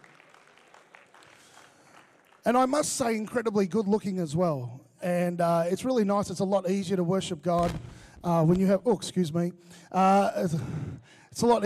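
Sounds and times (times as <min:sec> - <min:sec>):
audience applause: 0:00.0 - 0:02.6
speech: 0:02.4 - 0:11.6.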